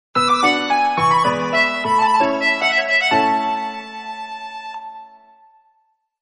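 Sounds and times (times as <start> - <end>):
phone ringtone melody: 0.2 - 3.6.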